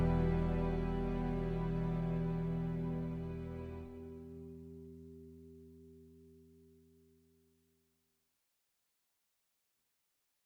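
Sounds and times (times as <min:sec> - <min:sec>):
cinematic music: 0:00.0 - 0:04.1.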